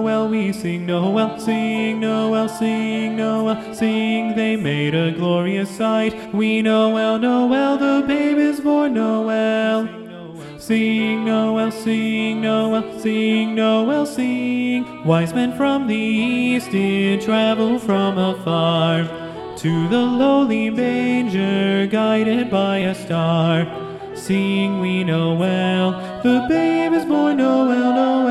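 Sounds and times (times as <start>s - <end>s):
SATB choir singing with tenor predominant: 0.0s - 28.2s.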